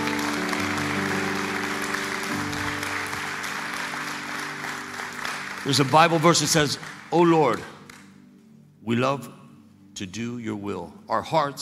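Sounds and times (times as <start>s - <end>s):
audience applause: 0.0s - 8.0s
speech: 5.6s - 7.8s, 8.8s - 9.4s, 10.0s - 11.6s.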